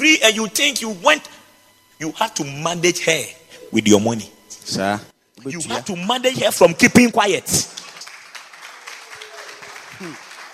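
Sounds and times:
speech: 0:00.0 - 0:01.4, 0:02.0 - 0:07.8, 0:10.0 - 0:10.2
crowd clapping: 0:07.6 - 0:10.5.

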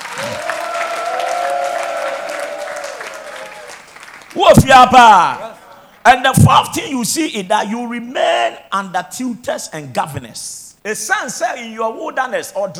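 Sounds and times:
audience shouting: 0:00.0 - 0:03.8
audience clapping: 0:00.0 - 0:05.0
speech: 0:04.4 - 0:05.4, 0:06.0 - 0:12.7.

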